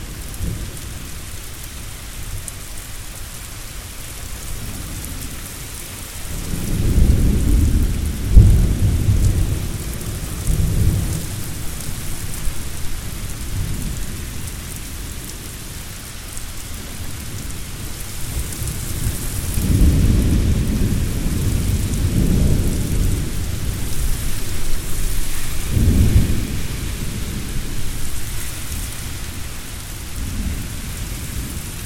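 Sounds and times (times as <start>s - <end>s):
thunderstorm in Louisville: 6.1s - 15.2s, 16.9s - 31.8s.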